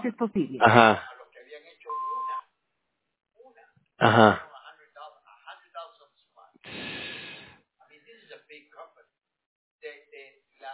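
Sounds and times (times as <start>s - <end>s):
speech: 0.0s - 1.1s, 4.0s - 4.5s
answering machine beep: 1.9s - 2.4s.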